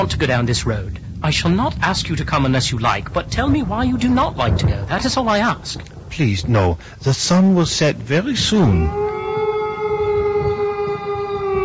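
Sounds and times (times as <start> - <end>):
speech: 0.0 - 9.1
low rumble: 0.0 - 11.6
wolf howling: 8.6 - 11.6.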